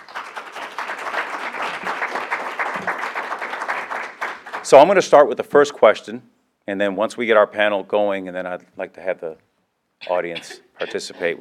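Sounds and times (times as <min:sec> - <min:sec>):
audience applause for honorees at a school panel event: 0:00.0 - 0:04.7
speech: 0:04.7 - 0:11.3.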